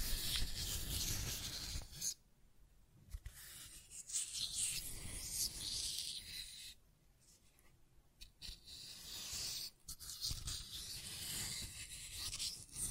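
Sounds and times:
scratching and tracing strokes: 0.0s - 2.2s, 3.1s - 12.9s.

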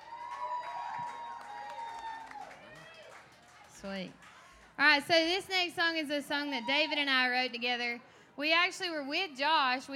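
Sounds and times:
audience cheering and shouting: 0.0s - 3.4s
audience applause: 0.0s - 3.8s
speech: 3.8s - 9.9s.

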